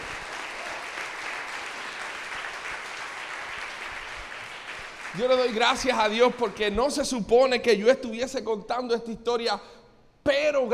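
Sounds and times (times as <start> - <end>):
audience applause: 0.0 - 6.2
speech: 5.1 - 10.7.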